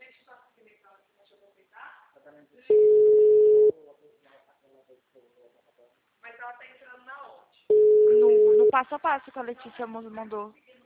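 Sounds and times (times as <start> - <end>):
phone call ringing tone: 2.7 - 3.7, 7.7 - 8.8
speech: 8.2 - 10.8.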